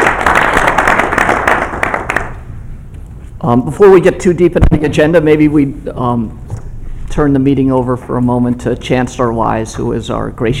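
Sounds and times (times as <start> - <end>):
audience applause: 0.0 - 2.4
speech: 3.4 - 6.4, 7.2 - 10.5.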